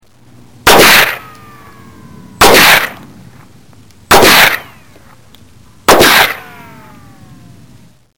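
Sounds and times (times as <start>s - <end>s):
rifle: 0.7s - 1.3s, 2.4s - 3.0s, 4.1s - 4.8s, 5.9s - 6.6s.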